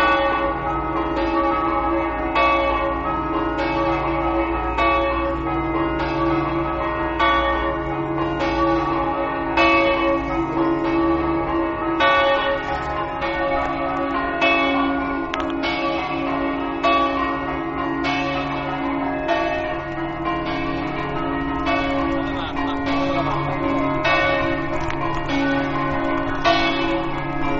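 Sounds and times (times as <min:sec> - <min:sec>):
bells: 0:00.0 - 0:27.5.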